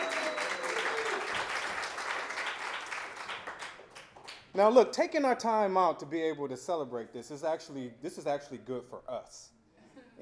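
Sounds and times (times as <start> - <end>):
audience applause: 0.0 - 4.0
speech: 4.6 - 9.6.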